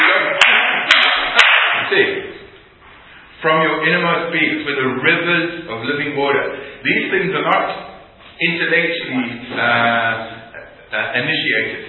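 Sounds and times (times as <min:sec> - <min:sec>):
hand clapping during a guided group exercise: 0:00.0 - 0:01.9
speech: 0:03.4 - 0:10.3, 0:10.9 - 0:11.8.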